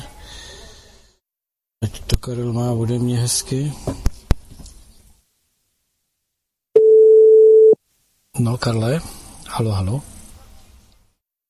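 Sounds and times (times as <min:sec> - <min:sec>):
speech: 0:02.2 - 0:04.0, 0:08.4 - 0:10.2
telephone busy tone after call drops: 0:06.8 - 0:07.8.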